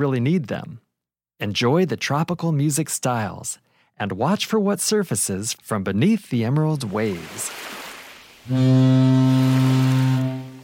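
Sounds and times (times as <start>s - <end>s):
speech: 0.0s - 0.8s, 1.4s - 7.8s, 8.4s - 10.4s
ship horn blast: 8.5s - 10.6s.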